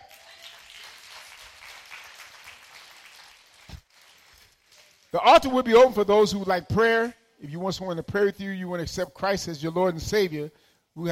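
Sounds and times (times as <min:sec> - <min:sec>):
crowd clapping: 0:00.0 - 0:05.2
speech: 0:05.1 - 0:11.0.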